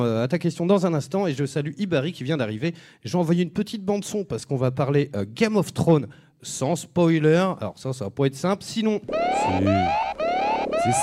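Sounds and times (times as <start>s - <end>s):
speech: 0.0s - 10.0s, 10.8s - 11.0s
alarm siren whooping: 9.1s - 11.0s.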